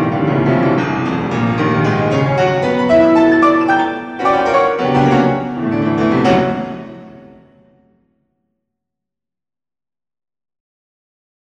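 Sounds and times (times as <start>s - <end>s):
piano etude: 0.0s - 8.0s.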